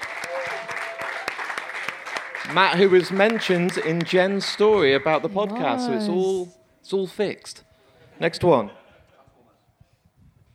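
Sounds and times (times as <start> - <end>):
round of applause: 0.0 - 4.7
speech: 2.5 - 8.8.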